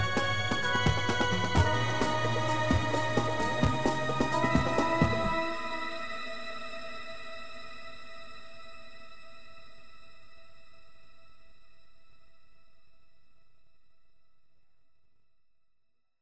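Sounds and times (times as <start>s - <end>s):
drum and bass music: 0.0s - 6.5s.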